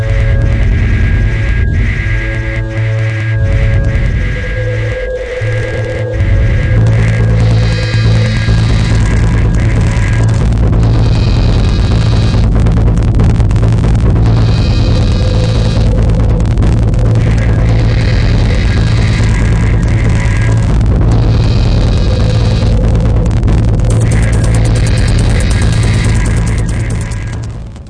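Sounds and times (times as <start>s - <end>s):
rapid drum machine hits: 0.1s - 27.8s.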